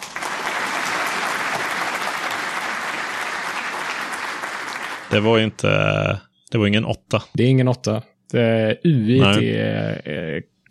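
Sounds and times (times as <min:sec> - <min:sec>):
applause from a group: 0:00.0 - 0:05.3
speech: 0:05.1 - 0:10.5.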